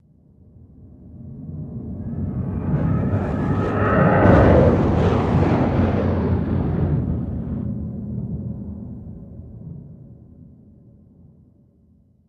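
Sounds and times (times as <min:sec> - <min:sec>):
Bird of Prey spaceship flyby: 0:01.8 - 0:07.8.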